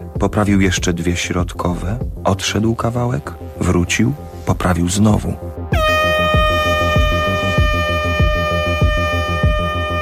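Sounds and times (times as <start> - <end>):
speech: 0.2 - 5.5
freight train horn: 5.8 - 10.0.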